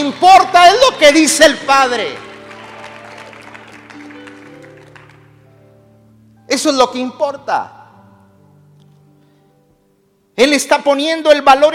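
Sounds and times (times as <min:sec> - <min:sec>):
speech: 0:00.1 - 0:02.2, 0:06.5 - 0:07.8, 0:10.4 - 0:11.7
audience applause: 0:01.8 - 0:05.4.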